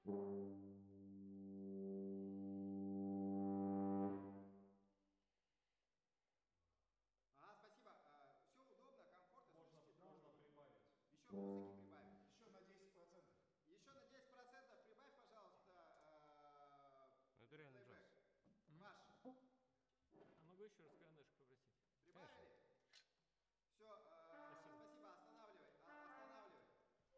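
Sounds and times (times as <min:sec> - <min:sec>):
trombones: 0:00.0 - 0:04.8, 0:11.2 - 0:12.4, 0:24.3 - 0:26.8.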